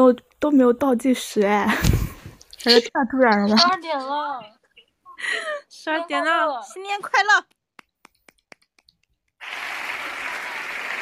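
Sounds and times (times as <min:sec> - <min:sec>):
speech: 0:00.0 - 0:02.0, 0:02.6 - 0:04.6, 0:05.2 - 0:07.6
canned applause sound effect: 0:07.4 - 0:11.0.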